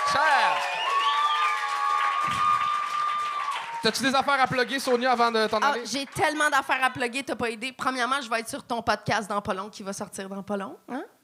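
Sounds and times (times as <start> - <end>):
audience applauding: 0.0 - 7.2
speech: 3.8 - 11.2.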